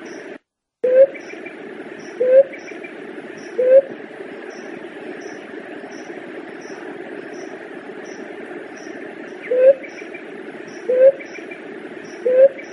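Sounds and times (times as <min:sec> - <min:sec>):
Leptotila dove cooing: 0:00.8 - 0:04.0, 0:09.3 - 0:12.7.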